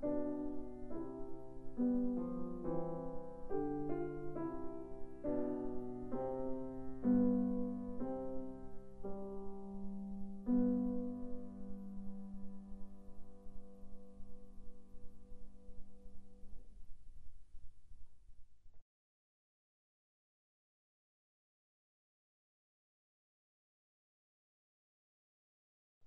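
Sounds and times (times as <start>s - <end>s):
piano piece: 0.0s - 16.8s.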